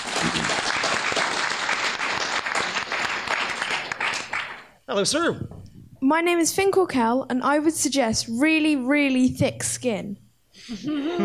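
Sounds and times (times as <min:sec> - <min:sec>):
audience applause: 0:00.0 - 0:04.8
speech: 0:04.9 - 0:11.2.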